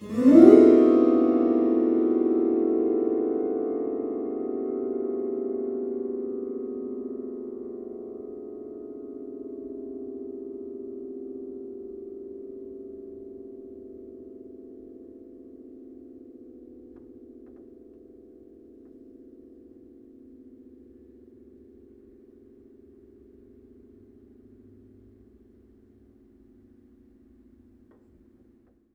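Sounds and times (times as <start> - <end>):
strings: 0.0 - 6.0
piano: 0.0 - 28.9.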